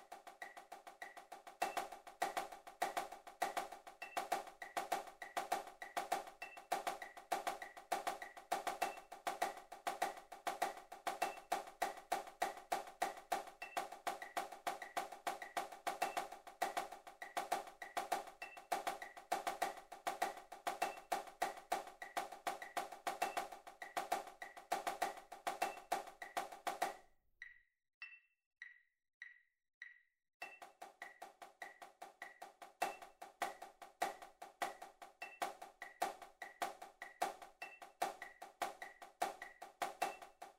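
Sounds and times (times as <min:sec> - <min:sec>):
accented tapping: 0:00.0 - 0:27.6, 0:28.6 - 0:40.5.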